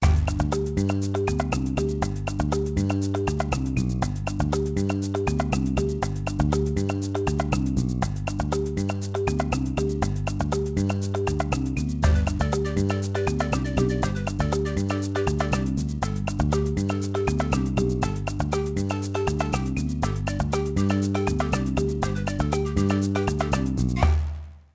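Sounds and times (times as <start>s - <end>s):
background music: 0.0s - 24.7s.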